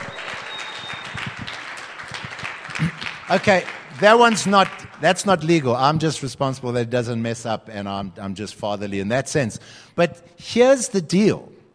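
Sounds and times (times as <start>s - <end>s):
audience applause: 0.0s - 5.6s
speech: 2.8s - 11.5s.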